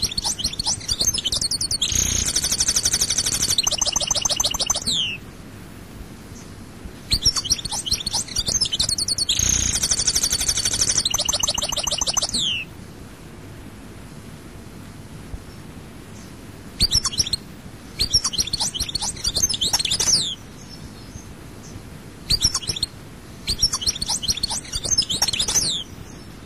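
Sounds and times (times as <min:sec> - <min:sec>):
European goldfinch twittering song: 0:00.0 - 0:05.2, 0:07.1 - 0:12.7, 0:16.8 - 0:17.4, 0:18.0 - 0:20.4, 0:22.3 - 0:22.9, 0:23.5 - 0:25.9.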